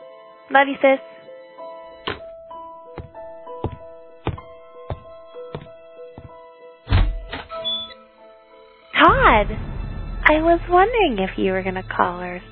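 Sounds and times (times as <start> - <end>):
speech: 0.5 - 1.1, 9.4 - 9.7, 10.3 - 12.5
knocking: 3.0 - 7.3.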